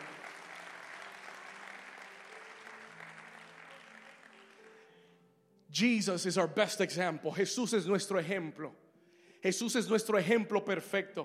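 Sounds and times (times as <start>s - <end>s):
audience applauding: 0.0s - 5.0s
speech: 5.8s - 8.8s, 9.4s - 11.2s.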